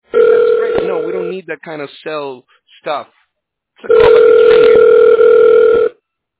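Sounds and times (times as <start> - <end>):
telephone ringing: 0.1 - 1.4, 3.9 - 6.0
speech: 1.3 - 3.2, 3.8 - 5.0.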